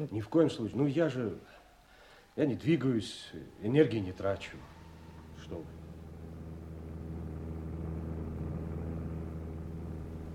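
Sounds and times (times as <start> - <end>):
speech: 0.0 - 1.6, 2.4 - 4.8, 5.4 - 5.8
airplane engine droning: 3.7 - 10.3.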